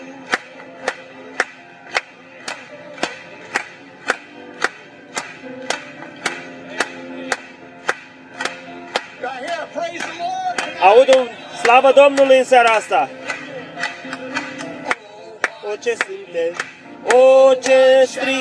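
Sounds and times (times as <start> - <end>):
audience clapping: 0.0 - 18.3
speech: 11.0 - 13.2, 15.8 - 18.3.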